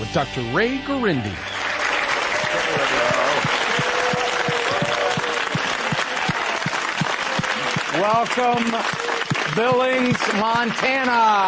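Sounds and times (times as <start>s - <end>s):
speech: 0.1s - 1.6s, 2.7s - 3.5s, 8.0s - 11.4s
studio audience applauding on a call-in advice show: 1.3s - 11.4s.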